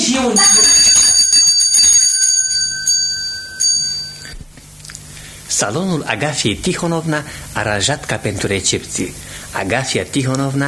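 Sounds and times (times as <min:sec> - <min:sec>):
speech: 0:00.1 - 0:00.9, 0:05.6 - 0:10.6
doorbell ringing: 0:00.4 - 0:04.4.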